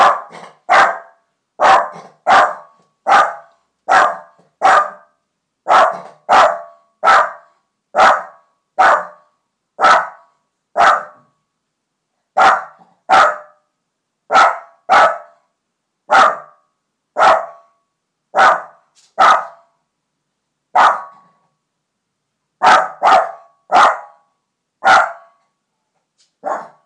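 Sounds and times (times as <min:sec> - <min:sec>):
animal barking: 0:00.0 - 0:05.1, 0:05.7 - 0:07.4, 0:08.0 - 0:09.2, 0:09.8 - 0:10.2, 0:10.8 - 0:11.2, 0:12.4 - 0:13.6, 0:14.3 - 0:15.3, 0:16.1 - 0:16.6, 0:17.2 - 0:17.6, 0:18.4 - 0:19.7, 0:20.8 - 0:21.3, 0:22.6 - 0:24.2, 0:24.8 - 0:25.3, 0:26.4 - 0:26.8.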